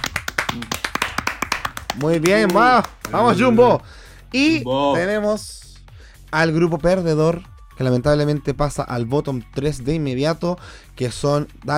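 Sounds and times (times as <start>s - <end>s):
small group hand clapping: 0.0s - 3.8s
speech: 2.0s - 5.6s, 6.3s - 11.7s.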